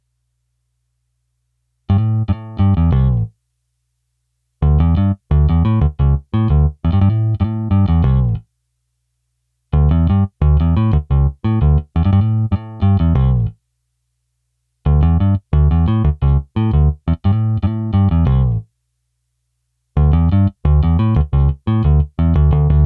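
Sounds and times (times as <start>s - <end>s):
bass: 1.9s - 3.4s, 4.6s - 8.5s, 9.7s - 13.6s, 14.8s - 18.8s, 19.9s - 22.8s.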